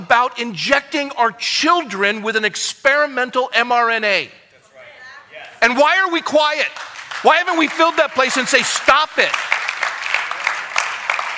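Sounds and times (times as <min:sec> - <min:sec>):
speech: 0:00.1 - 0:04.4, 0:05.6 - 0:09.5
light audience clapping: 0:06.5 - 0:11.3.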